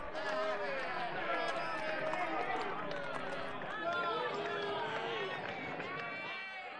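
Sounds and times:
crowd chattering toward theatre: 0.0 - 6.7.

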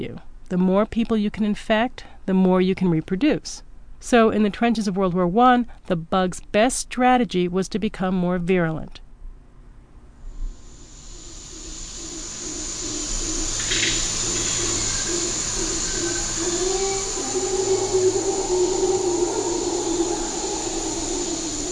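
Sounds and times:
speech: 0.0 - 9.0
howler monkeys calling in Panama tropical forest: 10.8 - 21.7.

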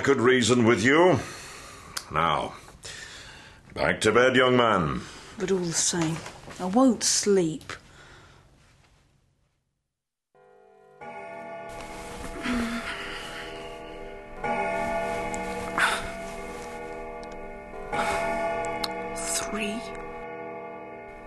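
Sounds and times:
speech: 0.0 - 1.4, 2.1 - 3.0, 3.7 - 7.8
clock striking the hour: 10.4 - 21.2.

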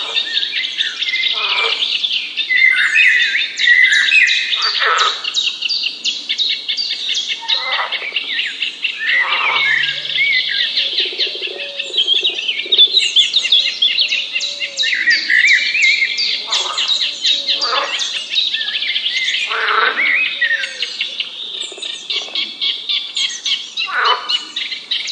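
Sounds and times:
birds chirping on a morning at a frog pond: 0.1 - 25.1
louder downward-swooping bird call: 9.0 - 17.9.

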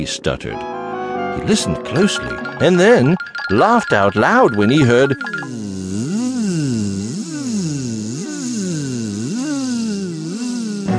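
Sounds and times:
speech: 0.0 - 5.6
buzzing of giant bees: 4.3 - 10.9.

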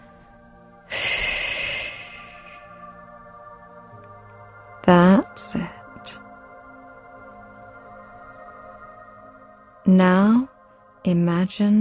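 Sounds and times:
slow deep breath during a calming relaxation exercise: 0.0 - 3.1
speech: 9.9 - 11.8.

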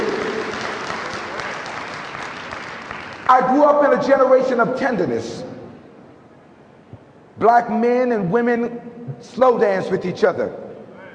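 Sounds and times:
audience round of applause: 0.0 - 3.5
speech: 3.4 - 5.5, 7.4 - 11.1.

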